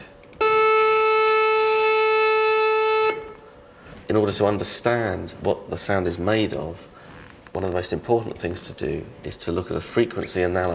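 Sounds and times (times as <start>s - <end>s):
saxophone note: 0.4s - 3.5s
speech: 4.1s - 7.0s, 7.6s - 10.7s.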